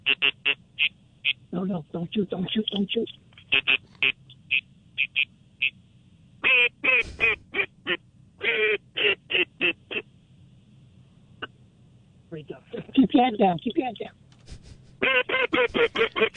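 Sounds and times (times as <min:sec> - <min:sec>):
duck call quacking: 0:00.0 - 0:01.4, 0:03.5 - 0:05.8, 0:06.4 - 0:10.1, 0:15.0 - 0:16.3
speech: 0:00.1 - 0:00.6, 0:01.3 - 0:03.9, 0:13.2 - 0:14.2, 0:15.0 - 0:16.3
laughter: 0:14.5 - 0:16.3.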